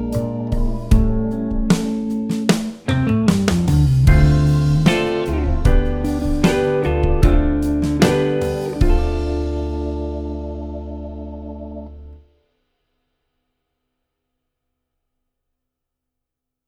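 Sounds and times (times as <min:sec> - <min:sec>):
jazz backing track: 0:00.0 - 0:12.2.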